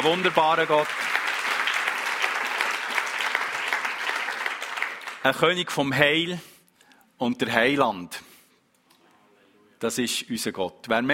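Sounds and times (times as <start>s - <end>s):
speech: 0.0s - 1.2s, 5.2s - 6.5s, 7.2s - 8.3s, 9.8s - 11.1s
audience applause: 0.0s - 5.4s.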